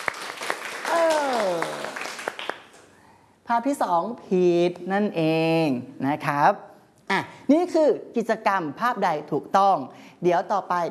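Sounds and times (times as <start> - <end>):
students clapping hands: 0.0 - 2.9
speech: 3.5 - 10.8.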